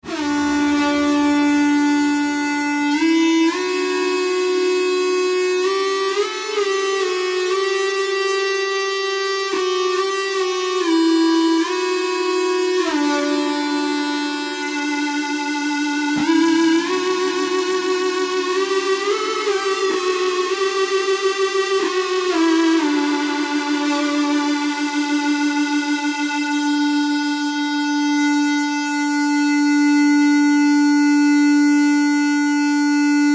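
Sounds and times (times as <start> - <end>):
simulated ebow guitar: 0.0 - 33.3.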